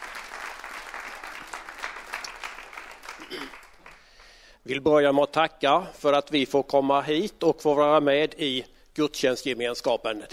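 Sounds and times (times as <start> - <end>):
audience applause: 0.0 - 4.3
speech: 3.3 - 3.6, 4.6 - 10.3.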